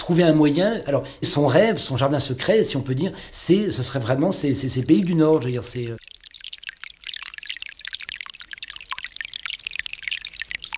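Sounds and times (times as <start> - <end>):
speech: 0.1 - 6.1
light rain dripping: 5.0 - 10.7.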